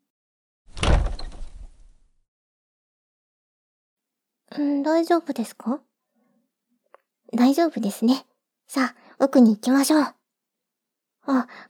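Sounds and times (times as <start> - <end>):
heavy door opening in ancient ruins: 0.7 - 1.9
speech: 4.5 - 5.9, 7.3 - 10.2, 11.2 - 11.6.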